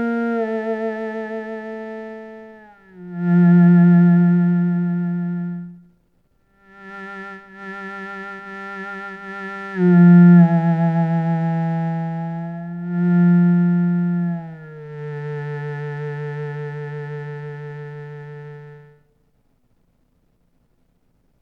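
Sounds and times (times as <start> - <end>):
cello: 0.0 - 5.9, 6.6 - 19.0.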